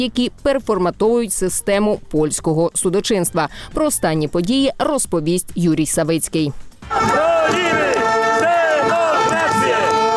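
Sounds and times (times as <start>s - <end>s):
speech: 0.0s - 7.8s
protest crowd chanting in unison: 6.8s - 10.1s.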